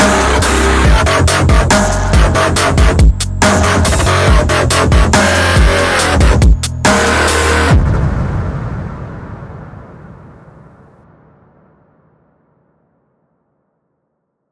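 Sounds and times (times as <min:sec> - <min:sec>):
dubstep synth: 0:00.0 - 0:07.8.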